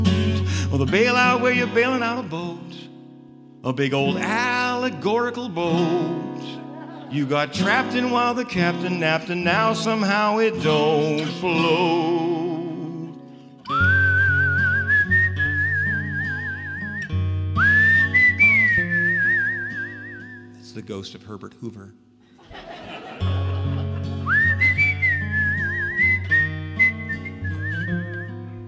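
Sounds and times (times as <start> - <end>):
speech: 0.7 - 2.9, 3.6 - 12.5, 20.8 - 22.6
laughter: 6.4 - 8.2, 22.4 - 24.8
person whistling a melody: 13.6 - 20.6, 24.2 - 28.6.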